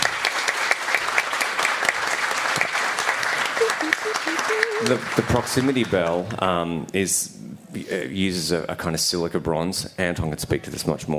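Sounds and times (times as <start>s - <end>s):
audience applause: 0.0s - 6.6s
speech: 4.8s - 11.1s.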